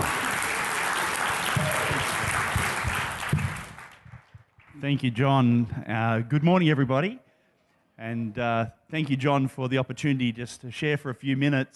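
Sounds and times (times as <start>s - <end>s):
audience applause welcoming a speaker at a morning gathering: 0.0s - 4.3s
speech: 4.8s - 7.3s, 8.0s - 11.7s.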